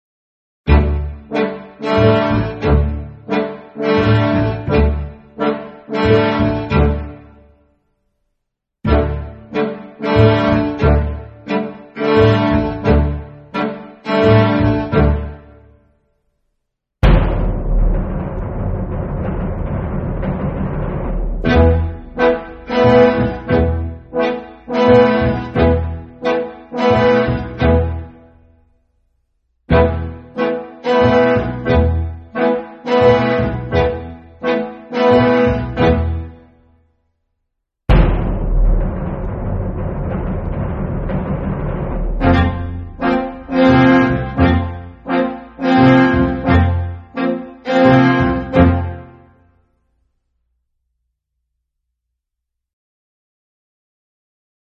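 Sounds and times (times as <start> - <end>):
instrumental underscore music: 0.7 - 7.6, 8.9 - 15.7, 17.0 - 28.4, 29.7 - 36.6, 37.9 - 49.4.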